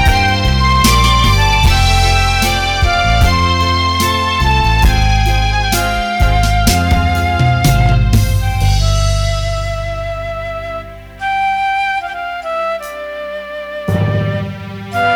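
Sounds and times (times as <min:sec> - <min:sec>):
ballad: 0:00.0 - 0:15.1.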